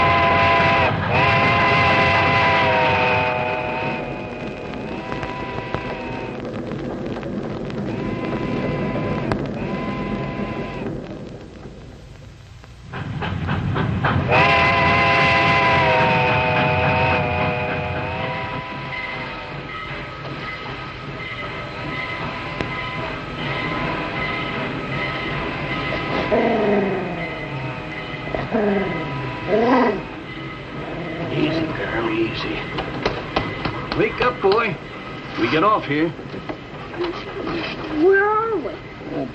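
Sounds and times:
steam train rumbling and clanking as it slows: 0:00.0 - 0:39.3
speech: 0:35.8 - 0:36.2.

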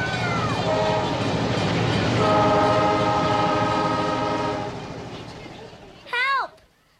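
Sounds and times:
toy train horn-like whistle tones: 0:00.0 - 0:01.4, 0:02.2 - 0:04.9
toy train set running at full throttle: 0:00.0 - 0:06.7.

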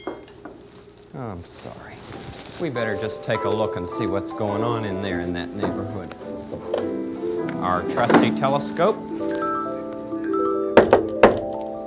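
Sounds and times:
soft steady hum: 0:00.0 - 0:11.8
speech: 0:01.1 - 0:09.4
knocking on door: 0:10.8 - 0:11.5.

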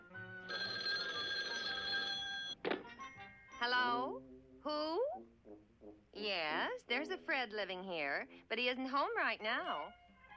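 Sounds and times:
telephone ringing: 0:00.4 - 0:02.6
speech: 0:03.6 - 0:10.0.

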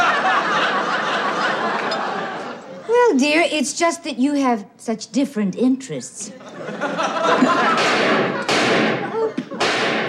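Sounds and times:
laughter: 0:00.0 - 0:03.0, 0:06.3 - 0:09.6
speech: 0:03.2 - 0:07.9
gunshots fired by an elderly war veteran: 0:07.8 - 0:10.0.

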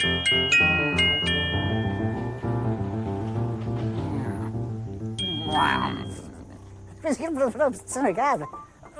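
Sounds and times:
trolley bell dinging: 0:00.0 - 0:02.8, 0:05.2 - 0:06.4
tuneful music: 0:00.0 - 0:08.5.

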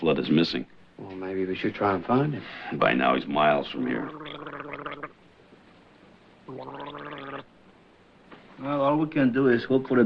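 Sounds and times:
speech: 0:00.0 - 0:04.4, 0:08.6 - 0:10.0
person gargling: 0:04.0 - 0:05.1, 0:06.5 - 0:07.5.

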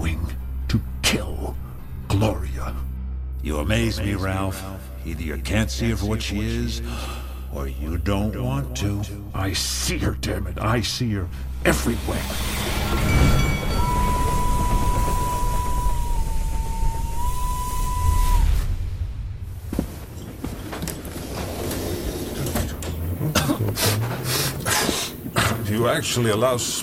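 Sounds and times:
speech: 0:00.7 - 0:01.6, 0:02.2 - 0:02.8, 0:03.4 - 0:13.4, 0:25.8 - 0:26.8
train rumbling along the rails: 0:11.7 - 0:25.4
thin sustained whistle-like tone: 0:12.6 - 0:18.8.

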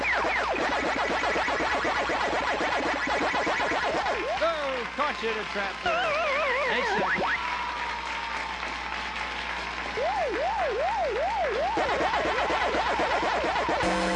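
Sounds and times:
game show buzzer: 0:00.0 - 0:04.8, 0:05.5 - 0:07.4, 0:09.8 - 0:14.1
crowd cheering: 0:00.0 - 0:14.1
speech: 0:05.2 - 0:07.2.

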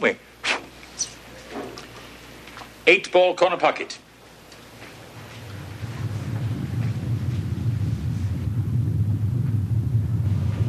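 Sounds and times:
speech: 0:00.0 - 0:00.2, 0:02.9 - 0:04.0
rumble of an approaching tornado: 0:05.0 - 0:10.6
wind-like hiss: 0:05.0 - 0:10.6.

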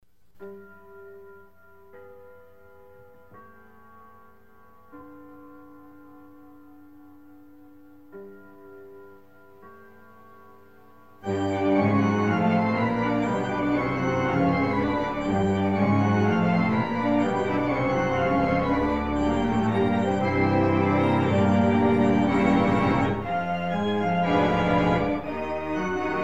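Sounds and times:
haunted organ music: 0:11.2 - 0:26.2.

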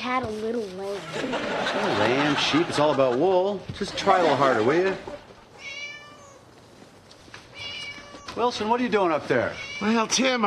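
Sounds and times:
speech: 0:00.0 - 0:05.2, 0:08.4 - 0:10.4
low noise: 0:00.0 - 0:10.4
laughter: 0:01.0 - 0:05.3
pet cat meowing up a tree: 0:05.6 - 0:06.5, 0:07.5 - 0:08.6, 0:09.4 - 0:10.2.

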